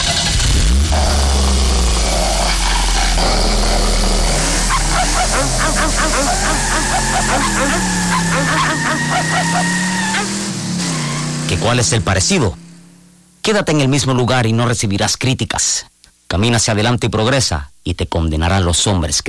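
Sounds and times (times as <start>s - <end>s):
car engine starting and running: 0.0s - 13.4s
dogs barking and yipping: 1.9s - 11.3s
speech: 11.6s - 12.6s, 13.5s - 19.2s.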